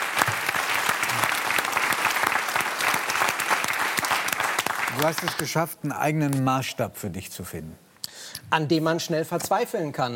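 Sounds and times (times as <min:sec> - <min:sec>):
audience applause: 0:00.0 - 0:05.6
speech: 0:05.0 - 0:10.1.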